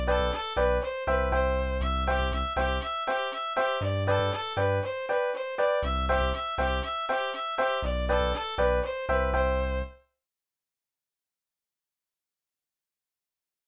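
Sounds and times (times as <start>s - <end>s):
Irish polka: 0.0s - 10.0s.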